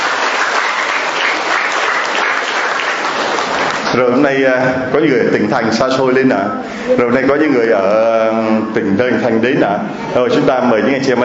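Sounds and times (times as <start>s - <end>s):
audience applause: 0.0s - 4.0s
speech: 4.0s - 11.2s.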